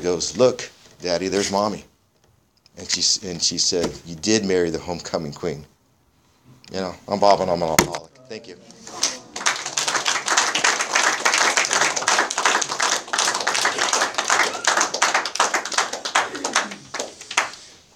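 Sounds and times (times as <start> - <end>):
speech: 0.0 - 1.9, 2.8 - 5.7, 6.7 - 8.8
audience applause: 9.0 - 17.7.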